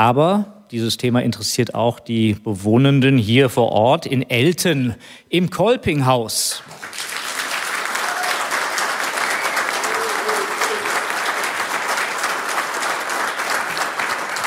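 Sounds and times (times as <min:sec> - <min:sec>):
speech: 0:00.0 - 0:07.1
big applause in a hall: 0:06.6 - 0:14.4.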